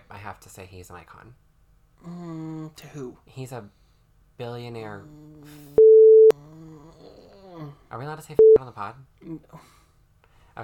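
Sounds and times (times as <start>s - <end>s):
speech: 0.2s - 3.8s, 4.4s - 5.8s, 7.6s - 9.8s
censor beep: 5.8s - 6.3s, 8.4s - 8.6s.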